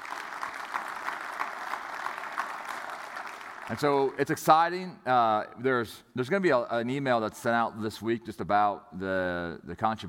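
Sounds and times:
audience applause: 0.0 - 4.2
speech: 3.7 - 10.0.

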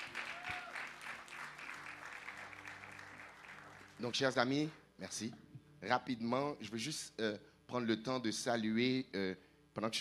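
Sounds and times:
audience applause: 0.0 - 4.0
speech: 4.0 - 9.9.

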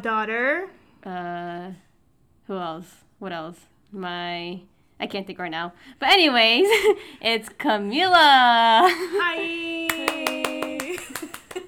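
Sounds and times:
speech: 0.0 - 1.9, 2.5 - 11.6
hand clapping: 9.9 - 11.6.

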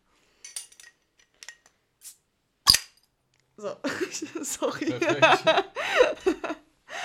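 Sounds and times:
cork pulled from a bottle: 2.0 - 2.9
speech: 3.6 - 6.6
laughter: 3.9 - 6.6.

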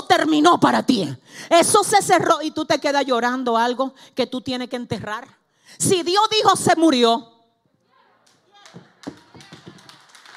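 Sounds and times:
speech: 0.1 - 7.3
audience applause: 8.5 - 10.3.

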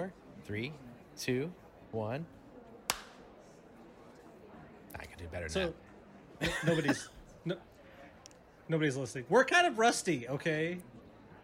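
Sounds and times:
speech: 0.0 - 2.4, 5.0 - 7.7, 8.7 - 11.0
single sharp hand clap for audio sync: 2.9 - 3.2
laughter: 6.4 - 7.3.

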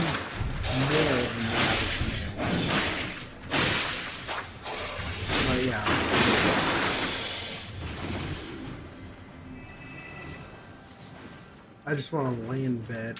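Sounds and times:
combat sounds from the video game Elden Ring: 0.0 - 9.8
speech: 11.9 - 13.1.

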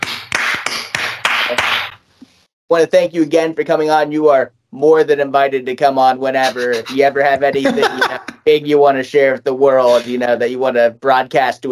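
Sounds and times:
sharp bright hand claps: 0.0 - 2.0
speech: 2.7 - 11.7
laughter: 6.4 - 8.4, 9.9 - 10.1.

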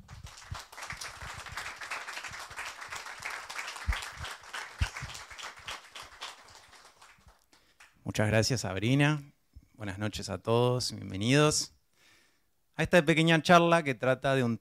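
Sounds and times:
audience applause: 0.0 - 7.9
speech: 8.2 - 11.8, 12.8 - 14.5.

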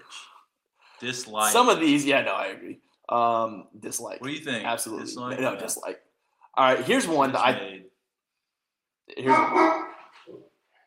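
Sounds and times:
speech: 1.0 - 6.0, 6.6 - 7.8, 9.2 - 10.5
pet dog barking or yowling: 9.2 - 10.1.

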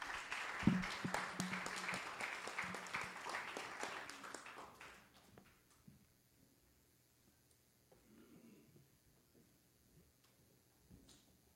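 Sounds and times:
audience applause for the worship team: 0.0 - 5.3.

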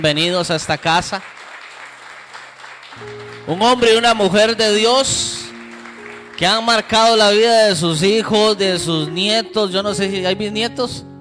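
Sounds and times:
speech: 0.0 - 1.4, 3.0 - 5.4, 6.4 - 11.1
audience applause: 0.6 - 4.5, 5.5 - 7.8.

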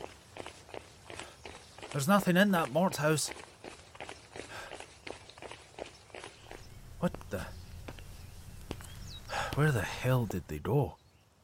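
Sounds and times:
running footsteps: 0.0 - 10.6
speech: 2.0 - 3.5, 7.0 - 7.6, 9.6 - 11.0.

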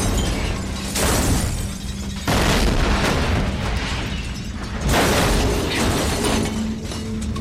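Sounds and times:
crackling debris: 0.0 - 7.3
explosion effect in a Bengali thriller audio story: 2.3 - 6.4.

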